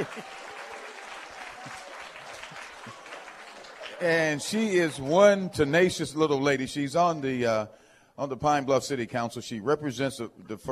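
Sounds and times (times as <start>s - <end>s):
audience applause: 0.0s - 5.4s
speech: 4.0s - 10.7s.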